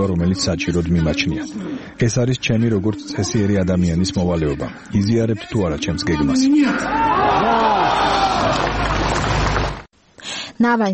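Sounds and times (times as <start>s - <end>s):
speech: 0.0s - 7.2s, 10.6s - 10.9s
crowd shouting enthusiastically at a Navalny rally: 6.8s - 9.2s.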